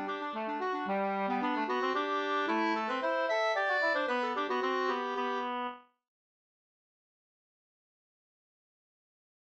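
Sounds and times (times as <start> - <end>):
polska folk tune in G minor: 0.0 - 6.0.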